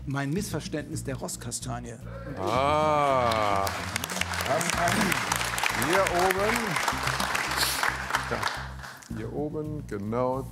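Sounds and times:
speech: 0:00.1 - 0:07.7, 0:08.3 - 0:10.5
audience applause: 0:02.4 - 0:09.1.

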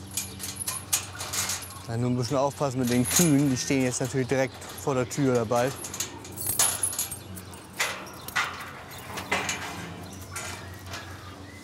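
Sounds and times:
keys jangling at a gate lock: 0:00.0 - 0:01.9, 0:02.8 - 0:09.6
speech: 0:01.9 - 0:06.0.

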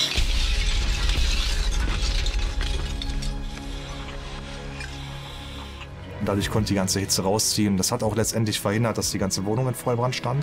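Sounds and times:
firefighter smashing in a burst window at a burning apartment: 0:00.0 - 0:04.9
speech: 0:06.3 - 0:10.4.

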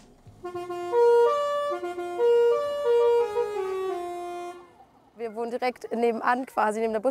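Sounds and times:
speech: 0:00.4 - 0:01.0, 0:05.4 - 0:07.0
mobile library bus horn playing a melodic tune: 0:00.4 - 0:04.9.

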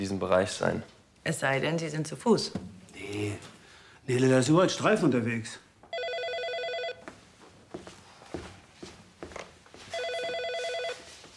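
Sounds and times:
speech: 0:00.0 - 0:05.6
telephone ringing: 0:05.9 - 0:07.0, 0:09.9 - 0:11.2
shuffling footsteps: 0:07.0 - 0:11.3
rustling movement: 0:07.1 - 0:11.3.

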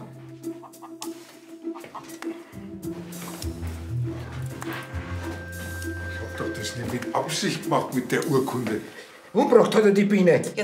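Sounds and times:
hen clucking: 0:00.5 - 0:02.5
speech: 0:06.6 - 0:10.6.

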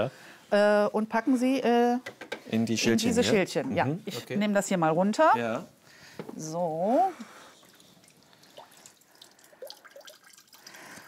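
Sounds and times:
speech: 0:00.0 - 0:07.3
quiet hissy background: 0:00.0 - 0:11.0
water dripping from soaked floral foam: 0:07.2 - 0:11.0.

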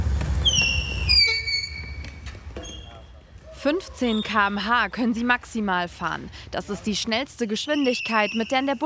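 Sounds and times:
electric wheelchair tyres squeaking on court: 0:00.1 - 0:03.2, 0:07.6 - 0:08.8
speech: 0:03.6 - 0:08.8.

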